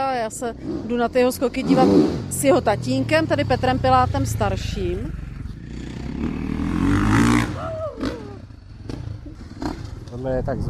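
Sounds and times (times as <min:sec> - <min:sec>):
motorcycle engine warming up: 0:00.0 - 0:10.6
speech: 0:00.2 - 0:06.5, 0:10.2 - 0:10.6
clatter: 0:08.8 - 0:10.6.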